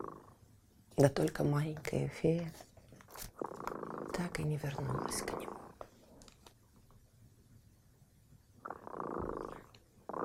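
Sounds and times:
cat purring: 0.0 - 0.4, 3.2 - 6.2, 8.6 - 10.2
speech: 1.0 - 3.3, 4.2 - 5.6.

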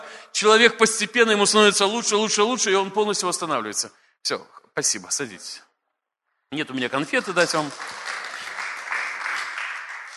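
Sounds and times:
speech: 0.4 - 5.7, 6.5 - 8.0
crowd applauding: 7.0 - 10.1.

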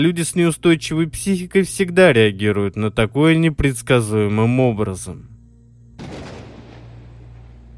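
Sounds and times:
speech: 0.0 - 5.3
sudden loud thunder clap: 6.0 - 7.7.

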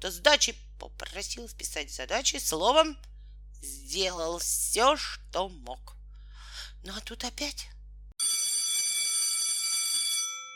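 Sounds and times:
speech: 0.0 - 6.0, 6.8 - 7.8
electric school bell ringing at break time: 8.2 - 10.5.

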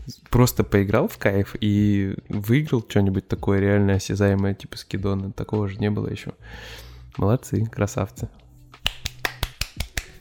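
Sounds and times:
speech: 0.1 - 8.4
hand slapping a cheek: 8.8 - 10.2.

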